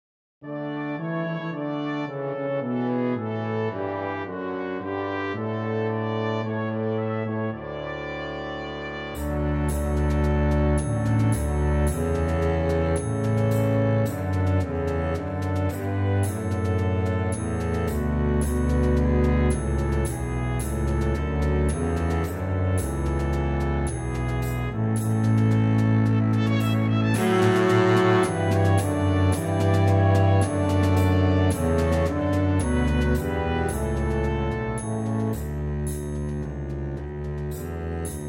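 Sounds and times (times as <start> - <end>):
carol backing track with melody: 0.5 - 38.2.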